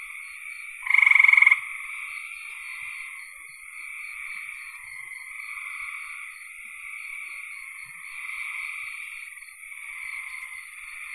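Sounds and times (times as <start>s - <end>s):
frog chorus: 0.0s - 11.1s
frog pulsed trill: 0.8s - 1.6s.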